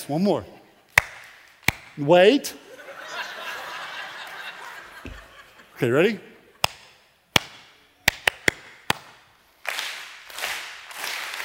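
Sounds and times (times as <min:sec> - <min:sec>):
speech: 0:00.1 - 0:00.6, 0:02.0 - 0:02.6, 0:05.8 - 0:06.3
single hand clap: 0:01.0 - 0:01.9, 0:06.6 - 0:11.4
laughter: 0:02.6 - 0:06.6.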